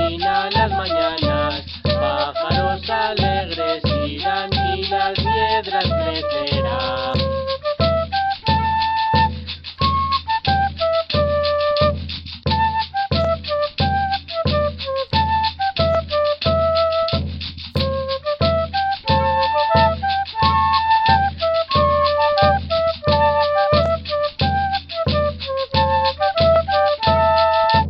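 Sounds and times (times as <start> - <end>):
Andean music: 0.0 - 17.2, 17.8 - 27.8.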